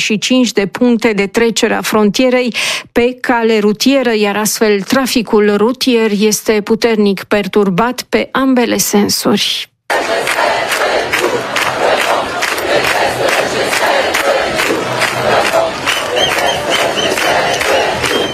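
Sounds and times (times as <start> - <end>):
speech: 0.0 - 10.4
protest crowd in Geneva: 9.9 - 18.3.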